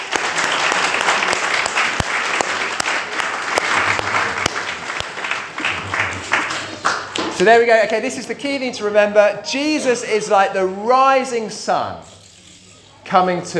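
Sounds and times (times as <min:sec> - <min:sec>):
audience applause: 0:00.0 - 0:07.3
speech: 0:07.4 - 0:12.1, 0:13.1 - 0:13.5.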